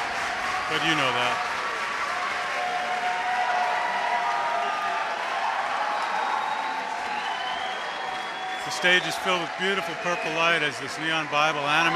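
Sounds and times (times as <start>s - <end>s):
concert crowd cheering: 0.0s - 11.9s
speech: 0.7s - 1.5s, 8.7s - 11.9s
high whoops: 2.6s - 9.0s.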